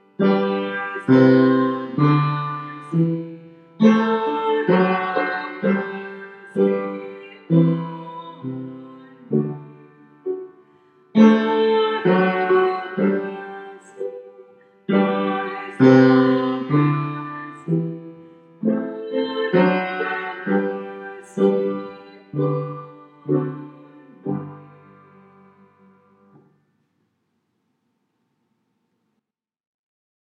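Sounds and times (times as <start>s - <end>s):
baritone singing: 0.2s - 10.0s, 11.2s - 14.3s, 14.9s - 18.0s, 18.6s - 25.9s.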